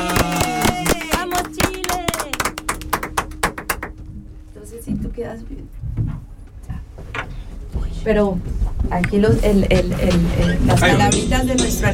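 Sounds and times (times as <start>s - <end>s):
applause: 0.0s - 4.0s
speech: 5.2s - 6.1s, 8.0s - 11.9s.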